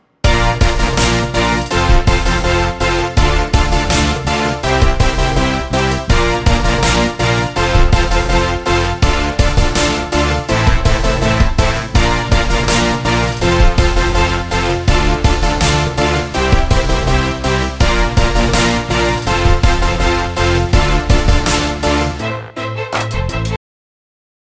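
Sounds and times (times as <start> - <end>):
choir backing track: 0.2 - 22.6.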